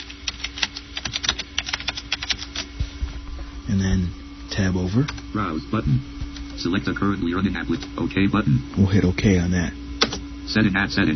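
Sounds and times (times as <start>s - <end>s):
typing a program name on a computer keyboard: 0.0s - 2.7s
faint steady hum: 0.0s - 11.1s
speech: 3.7s - 9.8s, 10.5s - 11.1s.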